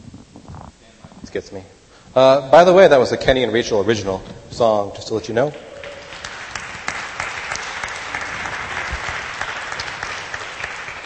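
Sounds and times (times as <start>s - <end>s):
speech: 1.3s - 5.7s
audience applause: 5.4s - 11.0s.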